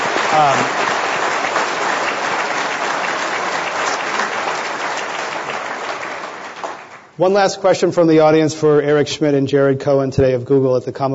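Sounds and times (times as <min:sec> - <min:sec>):
audience applause: 0:00.0 - 0:07.2
speech: 0:00.3 - 0:00.9, 0:07.2 - 0:11.1.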